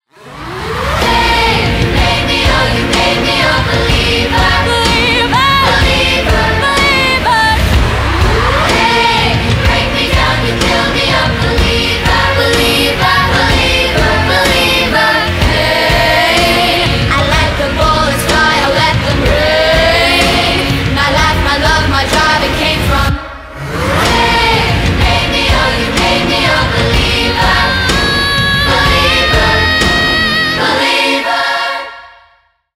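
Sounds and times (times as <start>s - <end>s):
children's choir singing: 0.2s - 32.4s.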